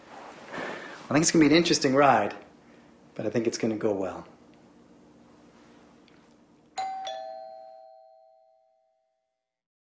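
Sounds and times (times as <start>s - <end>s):
low hum: 0.0s - 9.2s
speech: 1.1s - 2.4s, 3.2s - 4.3s
doorbell two-note ding-dong chime: 6.8s - 9.4s.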